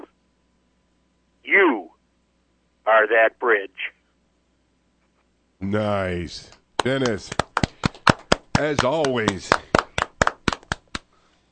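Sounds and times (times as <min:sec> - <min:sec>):
speech: 0:03.0 - 0:04.0, 0:05.6 - 0:07.4, 0:08.6 - 0:09.7
hand claps from someone in the booth: 0:06.5 - 0:11.1.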